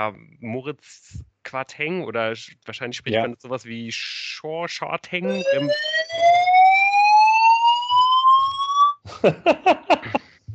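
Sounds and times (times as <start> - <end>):
speech: 0.0 - 6.5, 9.2 - 10.2
laughter: 2.8 - 3.4, 5.2 - 5.7, 9.1 - 10.4
fire alarm: 5.3 - 9.0.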